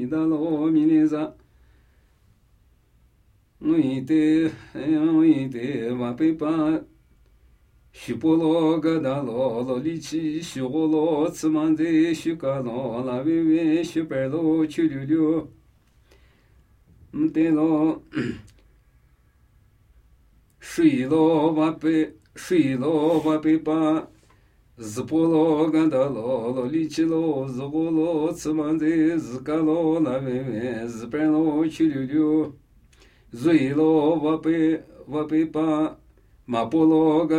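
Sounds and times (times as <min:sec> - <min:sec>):
Namuyi Tibetan ritual chanting: 0:00.0 - 0:01.4, 0:03.6 - 0:06.9, 0:07.9 - 0:15.6, 0:17.1 - 0:18.3, 0:20.6 - 0:32.7, 0:33.3 - 0:37.3.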